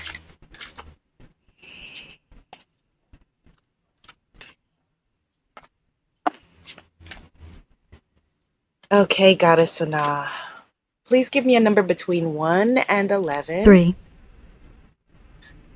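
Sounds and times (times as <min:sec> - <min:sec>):
deck of cards shuffling: 0:00.0 - 0:04.6, 0:06.3 - 0:08.0
speech: 0:08.9 - 0:10.4, 0:11.1 - 0:14.0.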